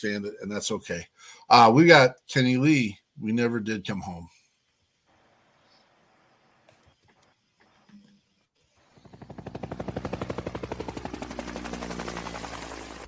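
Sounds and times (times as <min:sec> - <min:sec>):
speech: 0:00.0 - 0:04.4
enemy machine gun firing beyond a hedgerow: 0:08.9 - 0:13.0.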